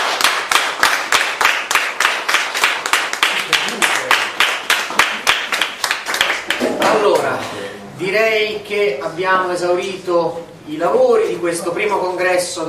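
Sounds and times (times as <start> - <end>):
audience applause: 0.0 - 6.8
speech: 8.0 - 12.6.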